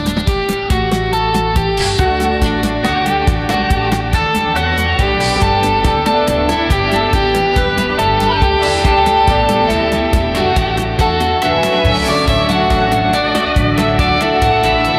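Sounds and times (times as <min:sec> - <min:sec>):
uplifting soft rock music: 0:00.0 - 0:14.9.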